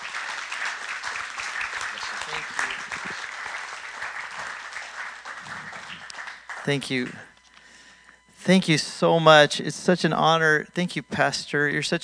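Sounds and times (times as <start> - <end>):
crowd applauding: 0.0 - 7.3
speech: 6.6 - 7.3, 8.4 - 12.0.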